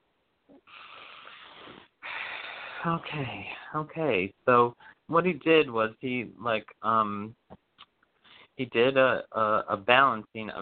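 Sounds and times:
deep breath in through the nose and out through the mouth: 0.7 - 3.0
speech: 2.8 - 7.4, 8.6 - 10.5.

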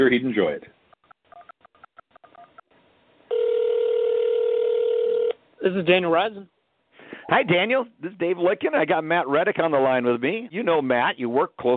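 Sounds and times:
speech: 0.0 - 0.8, 5.6 - 6.5, 7.3 - 11.7
telephone dialing tones: 3.3 - 5.4.

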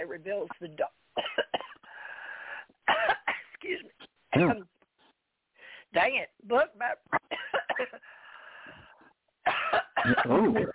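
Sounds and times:
speech: 0.0 - 1.4, 3.7 - 4.8, 5.9 - 8.1, 9.7 - 10.7
speaker coughing harshly while choking mid-sentence: 1.2 - 1.8, 2.9 - 3.5, 4.3 - 4.6, 7.2 - 8.0, 9.5 - 10.7.

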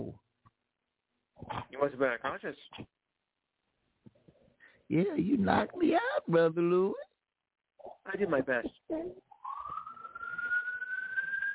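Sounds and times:
speech: 1.8 - 3.0, 4.9 - 7.1, 7.8 - 9.2
police siren wailing: 9.3 - 11.5.

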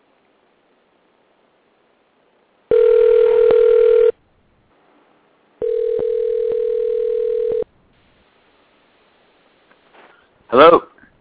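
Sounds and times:
phone call ringing out: 2.7 - 4.2, 5.6 - 7.7.

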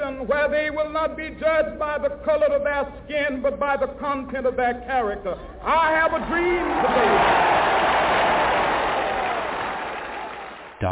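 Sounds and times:
speech: 0.2 - 7.6, 10.8 - 10.9
crowd cheering and clapping: 6.2 - 10.8.

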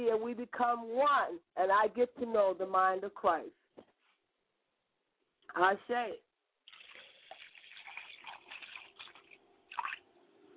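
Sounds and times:
speech: 0.0 - 3.6, 5.5 - 6.2
water poured onto the ground: 6.7 - 10.0.

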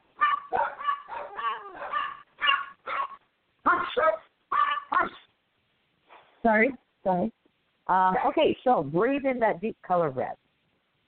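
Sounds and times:
dogs yapping with sharp high barks: 0.1 - 5.3
speech: 6.4 - 10.4.

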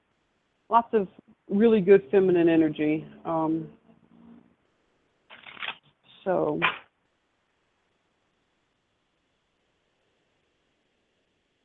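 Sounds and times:
speech: 0.7 - 3.8, 6.2 - 6.8
Doreen Virtue goddess oracle cards being shuffled: 5.3 - 5.9.

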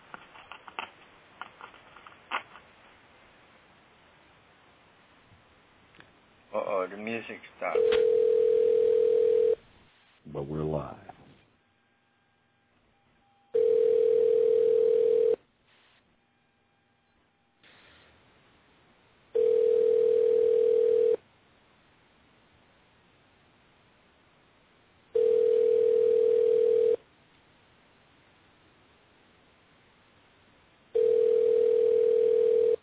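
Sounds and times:
speech: 6.6 - 8.2, 10.4 - 11.1
telephone ringing tone: 7.7 - 9.6, 13.5 - 15.4, 19.3 - 21.2, 25.1 - 27.0, 30.9 - 32.8.

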